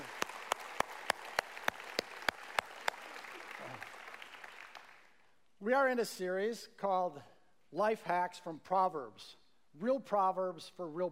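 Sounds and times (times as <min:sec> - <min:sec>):
audience applause for a band: 0:00.0 - 0:05.2
speech: 0:05.6 - 0:11.1.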